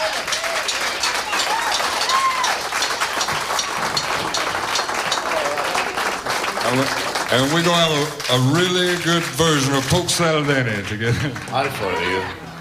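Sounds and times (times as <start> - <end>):
audience applause: 0.0 - 12.6
speech: 6.7 - 12.4.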